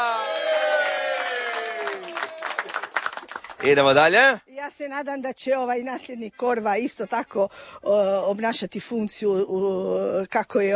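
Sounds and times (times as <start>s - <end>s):
applause at a community event in Pula: 0.0s - 4.2s
speech: 3.6s - 10.7s.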